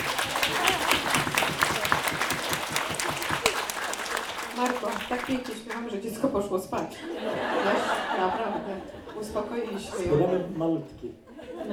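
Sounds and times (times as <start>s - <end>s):
audience applause at a concert: 0.0s - 5.9s
speech: 5.1s - 11.7s
laughter: 6.9s - 10.5s, 11.2s - 11.7s.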